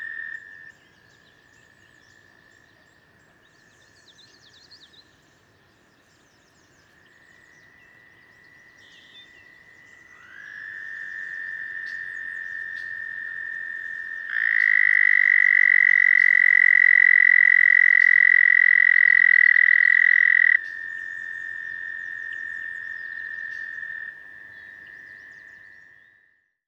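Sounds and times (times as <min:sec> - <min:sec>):
American toad Anaxyrus americanus calling: 0:10.2 - 0:26.0.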